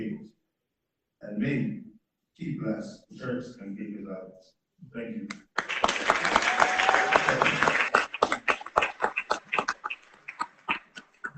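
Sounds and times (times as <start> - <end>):
speech: 1.2 - 1.8, 2.4 - 5.7, 7.0 - 7.8
audience applause: 5.6 - 11.3.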